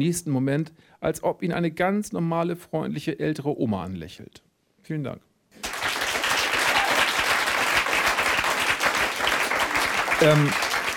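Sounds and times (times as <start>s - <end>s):
speech: 0.0s - 5.3s, 10.2s - 10.7s
audience applause: 5.6s - 10.9s.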